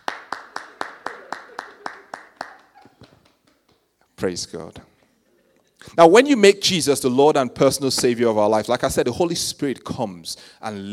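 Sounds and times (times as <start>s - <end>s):
hands clapping: 0.0s - 4.1s
speech: 4.2s - 4.9s, 6.0s - 10.9s.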